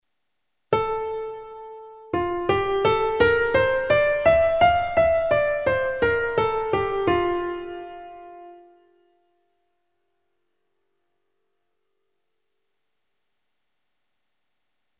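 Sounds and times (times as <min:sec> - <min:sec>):
musical scale for dictation: 0:01.0 - 0:08.9.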